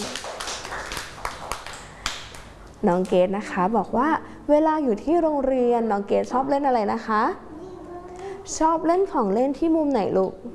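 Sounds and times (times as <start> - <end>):
children clapping in a classroom: 0.0 - 2.6
speech: 2.8 - 7.5, 8.5 - 10.5.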